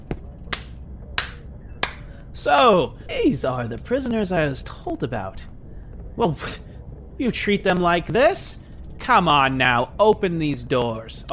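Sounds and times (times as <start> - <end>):
low hum: 0.0 - 11.3
sharp claps: 0.5 - 2.1
speech: 2.4 - 5.5, 6.2 - 11.3.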